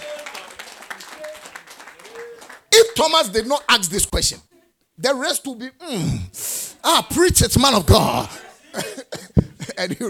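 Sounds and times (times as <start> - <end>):
audience applause: 0.0 - 2.7
speech: 2.7 - 9.1, 9.8 - 10.0.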